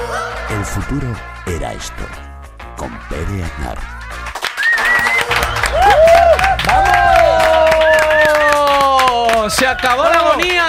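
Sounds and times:
speech: 0.6 - 4.0, 5.3 - 7.2, 9.5 - 10.6
audience applause and cheering: 4.2 - 10.6.

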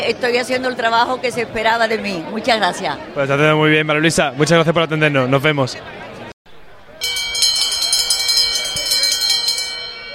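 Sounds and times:
speech: 0.0 - 6.1
bell signalling start of a horse race: 7.0 - 10.1.

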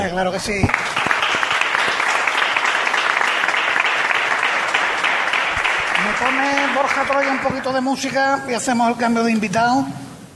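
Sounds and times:
speech: 0.1 - 1.0, 6.1 - 10.0
audience applause: 0.7 - 8.4.

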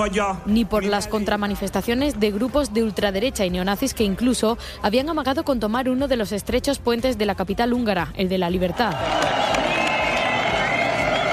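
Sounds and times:
speech: 0.0 - 9.6
scattered clapping: 8.7 - 11.3
Budapest Pride march crowd crossing Elisabeth Bridge: 8.9 - 11.3.

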